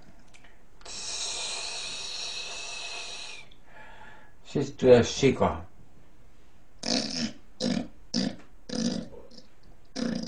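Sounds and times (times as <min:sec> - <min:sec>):
quiet breathing: 0:00.4 - 0:04.4
person imitating a snake hiss: 0:00.8 - 0:03.6, 0:06.8 - 0:09.4
speech: 0:04.5 - 0:05.7.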